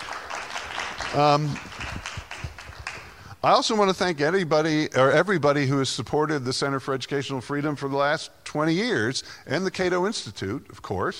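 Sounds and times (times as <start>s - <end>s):
audience applause: 0.0s - 3.2s
speech: 1.1s - 1.7s, 3.4s - 11.1s.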